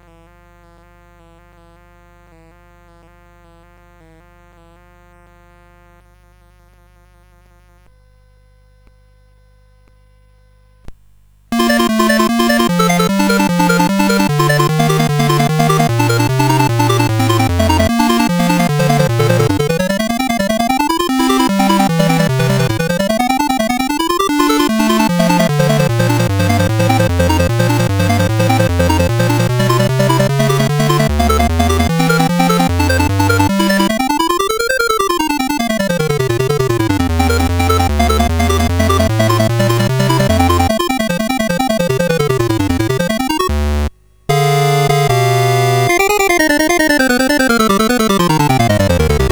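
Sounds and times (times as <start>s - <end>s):
prelude: 11.6s - 49.3s.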